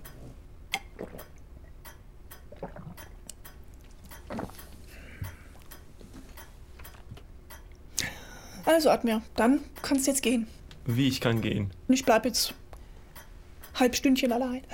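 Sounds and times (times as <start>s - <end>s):
small clicking mouth and glass sounds: 0.0s - 8.1s
sipping water: 0.0s - 8.6s
speech: 8.7s - 12.6s, 13.8s - 14.7s.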